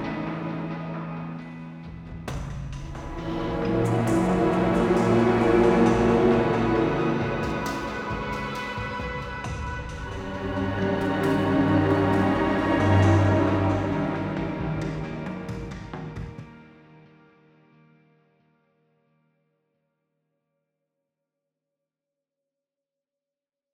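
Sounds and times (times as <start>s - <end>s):
full song played on a Kontakt sampler: 3.0s - 16.4s.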